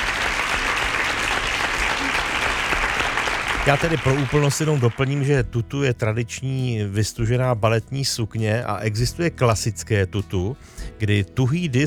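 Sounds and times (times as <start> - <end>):
audience applause: 0.0 - 5.4
speech: 3.6 - 11.8.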